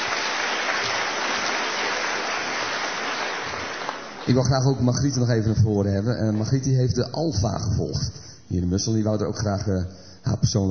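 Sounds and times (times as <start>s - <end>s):
audience applause: 0.0s - 4.4s
speech: 4.3s - 10.6s.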